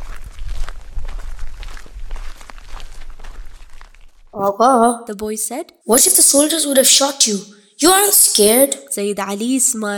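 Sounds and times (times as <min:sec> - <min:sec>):
footsteps walking: 0:00.0 - 0:04.3
speech: 0:04.4 - 0:09.9.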